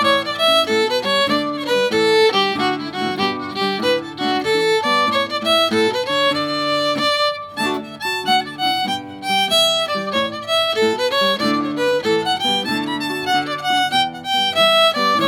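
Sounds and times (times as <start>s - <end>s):
fiddle: 0.0s - 15.2s
guitar: 0.0s - 15.2s.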